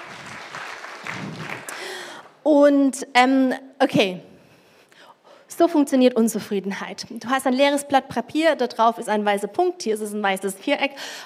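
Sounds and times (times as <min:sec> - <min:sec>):
small audience applause: 0:00.0 - 0:02.2
speech: 0:02.4 - 0:04.3, 0:05.6 - 0:11.2.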